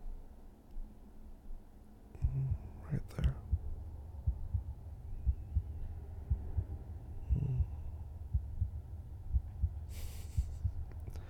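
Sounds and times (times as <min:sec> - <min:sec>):
soft hum: 0:00.0 - 0:11.2
human heartbeat: 0:02.2 - 0:11.2
speech: 0:02.9 - 0:03.4.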